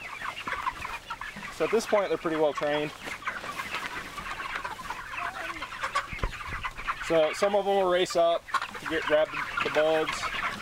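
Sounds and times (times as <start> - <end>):
flock of chickens clucking: 0.0 - 10.6
outdoor noise: 0.0 - 10.6
speech: 1.6 - 3.1, 7.1 - 10.3.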